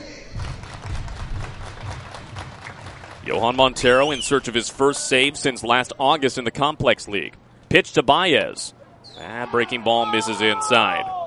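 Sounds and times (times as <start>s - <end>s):
low thumping bursts: 0.3s - 4.8s
baseball crowd cheering and clapping: 0.3s - 5.3s
speech: 3.3s - 11.2s.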